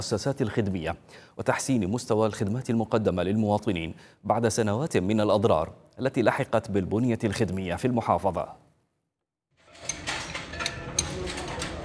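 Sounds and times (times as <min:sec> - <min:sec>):
speech: 0:00.0 - 0:08.6
wrenches and spare parts clinking in a garage: 0:09.7 - 0:11.8.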